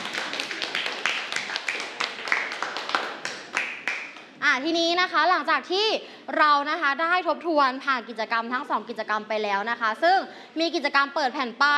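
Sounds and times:
class of students applauding: 0.0s - 4.4s
speech: 4.5s - 11.7s.

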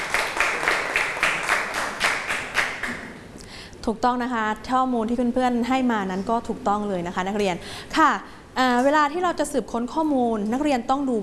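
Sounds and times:
classroom students clapping for a classmate: 0.0s - 3.2s
speech: 3.9s - 11.2s.

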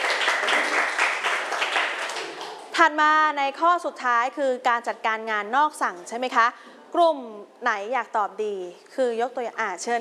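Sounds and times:
students in a classroom clapping for a classmate: 0.0s - 2.8s
speech: 2.8s - 9.9s.

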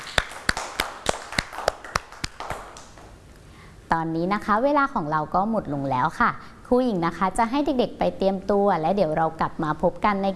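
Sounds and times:
children clapping for themselves: 0.0s - 3.2s
speech: 3.9s - 10.3s.

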